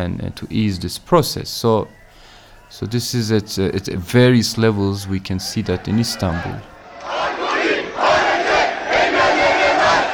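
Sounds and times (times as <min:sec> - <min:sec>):
speech: 0:00.0 - 0:02.0, 0:02.7 - 0:07.3
protest crowd in Istanbul shouting and chanting against alcohol laws: 0:05.4 - 0:10.1.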